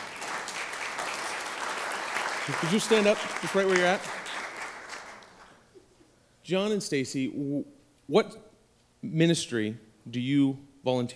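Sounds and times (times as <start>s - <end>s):
audience applause: 0.0s - 5.5s
speech: 2.5s - 4.2s, 6.5s - 11.1s.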